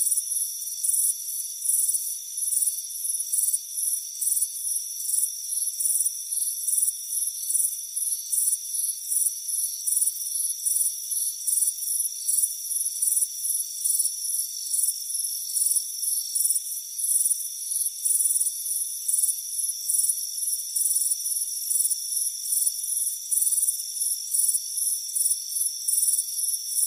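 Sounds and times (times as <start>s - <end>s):
crickets chirping: 0.0s - 26.8s.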